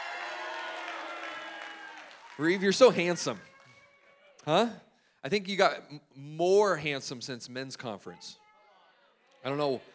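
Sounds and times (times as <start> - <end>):
audience applause: 0.0 - 3.7
speech: 2.4 - 3.5, 4.4 - 8.4, 9.4 - 9.9.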